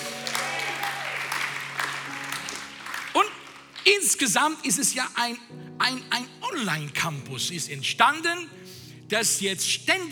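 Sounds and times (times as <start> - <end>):
audience applause: 0.0 - 4.3
speech: 3.9 - 10.1.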